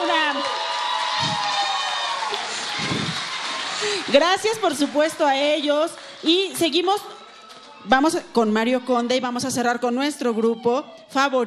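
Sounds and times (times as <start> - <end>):
audience applauding: 0.0 - 8.3
audience cheering: 0.0 - 9.4
speech: 4.1 - 7.2, 7.8 - 11.4.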